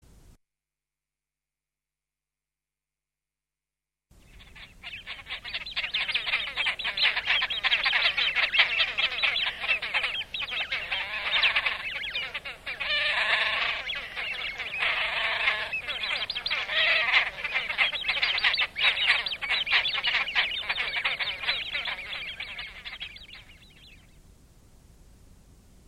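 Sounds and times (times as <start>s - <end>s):
great crested grebe harsh rattling calls: 4.3s - 24.0s.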